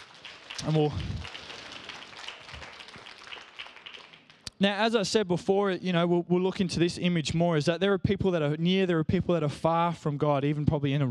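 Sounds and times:
audience applause: 0:00.0 - 0:04.5
speech: 0:00.6 - 0:01.3, 0:04.6 - 0:11.0.

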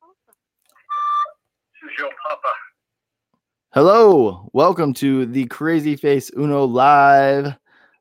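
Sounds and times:
voice over phone line: 0:00.9 - 0:02.8
speech: 0:03.8 - 0:07.6.

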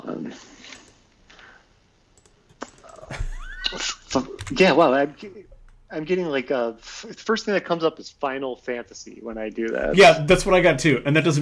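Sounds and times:
keyboard typing: 0:02.2 - 0:05.9
speech: 0:04.1 - 0:11.3.

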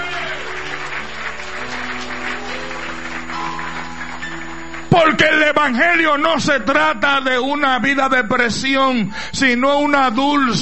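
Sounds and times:
loud applause from a large audience: 0:00.0 - 0:06.2
speech: 0:05.0 - 0:10.5.

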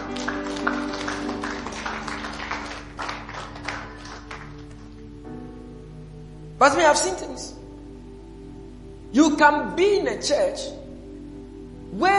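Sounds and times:
audience clapping hands: 0:00.0 - 0:05.1
speech: 0:06.6 - 0:07.6, 0:09.2 - 0:10.8.

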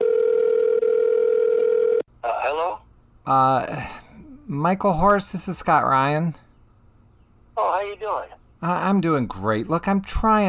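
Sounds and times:
telephone line tone: 0:00.0 - 0:02.0
speech: 0:02.5 - 0:06.4, 0:07.8 - 0:10.4.

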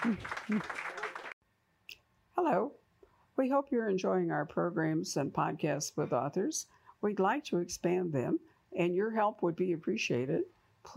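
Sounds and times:
speech: 0:00.0 - 0:00.8, 0:03.4 - 0:10.9
audience applause: 0:00.0 - 0:01.4.

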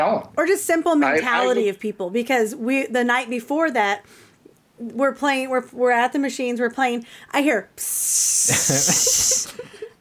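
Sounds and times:
speech: 0:00.0 - 0:09.9
faint breaths: 0:04.0 - 0:04.5, 0:07.0 - 0:07.4
voice imitating an aerosol disinfectant spray hiss: 0:07.8 - 0:09.6
laughter: 0:08.5 - 0:10.0.

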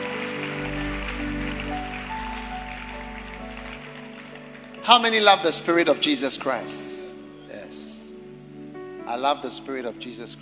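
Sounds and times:
audience clapping: 0:00.0 - 0:06.5
speech: 0:04.9 - 0:06.9, 0:09.1 - 0:10.4.

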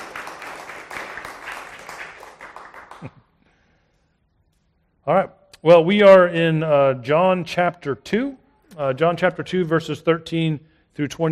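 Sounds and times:
audience applause: 0:00.0 - 0:03.2
speech: 0:03.0 - 0:03.2, 0:05.0 - 0:11.3.

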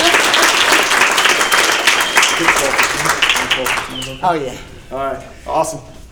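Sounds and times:
audience applause welcoming a speaker: 0:00.0 - 0:04.3
laughter: 0:00.0 - 0:04.8
speech: 0:04.2 - 0:06.0.

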